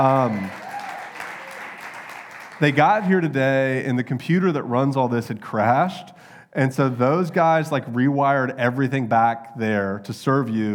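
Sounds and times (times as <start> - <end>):
speech: 0.0 - 0.6, 2.6 - 10.7
audience applause: 0.0 - 3.0.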